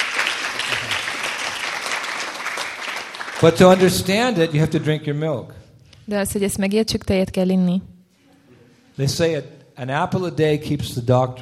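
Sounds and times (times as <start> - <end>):
audience applause: 0.0 - 4.8
speech: 3.4 - 7.9, 9.0 - 11.3.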